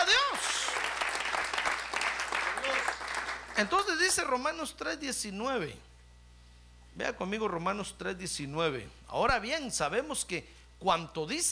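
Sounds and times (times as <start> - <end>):
audience applauding: 0.0 - 4.2
speech: 3.6 - 5.9, 7.0 - 11.4.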